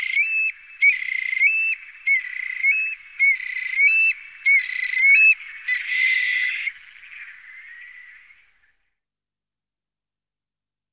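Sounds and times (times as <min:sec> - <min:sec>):
stone-curlew calling: 0:00.0 - 0:08.9.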